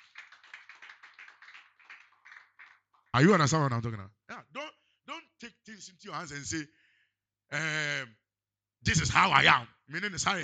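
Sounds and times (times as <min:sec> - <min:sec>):
group of people clapping hands in a steady rhythm: 0:00.0 - 0:03.5
speech: 0:03.2 - 0:04.2, 0:05.7 - 0:06.8, 0:07.5 - 0:08.2, 0:08.8 - 0:10.4.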